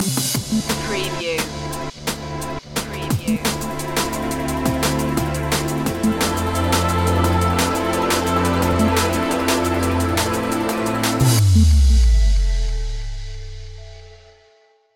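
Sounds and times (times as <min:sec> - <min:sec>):
drum and bass space stinger: 0:00.0 - 0:14.3.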